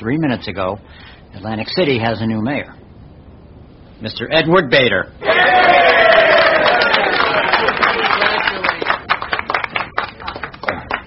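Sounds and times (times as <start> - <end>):
speech: 0.0 - 2.8, 4.0 - 6.1
crowd cheering: 5.2 - 9.8
audience applause: 5.2 - 11.0.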